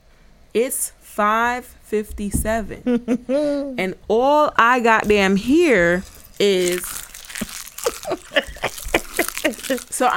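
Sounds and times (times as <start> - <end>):
speech: 0.6 - 7.0, 9.5 - 10.1
crunching while eating: 5.8 - 10.1
laughter: 7.8 - 10.1.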